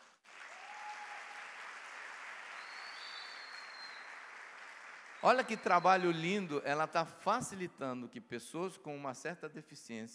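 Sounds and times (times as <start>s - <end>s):
audience applause: 0.0s - 5.8s
speech: 5.2s - 10.1s.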